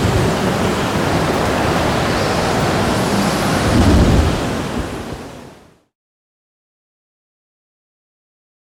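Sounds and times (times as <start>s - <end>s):
thunderstorm over the ocean: 0.0s - 5.6s
ocean waves: 0.0s - 5.9s.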